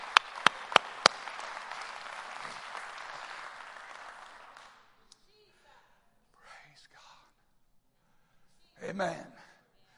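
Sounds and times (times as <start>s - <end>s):
audience clapping hands: 0.0s - 5.0s
speech: 8.9s - 9.4s.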